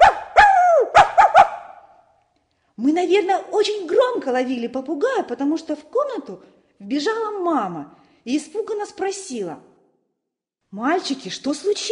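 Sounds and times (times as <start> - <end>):
dog barking: 0.0 - 1.9
speech: 2.8 - 9.7, 10.7 - 11.9.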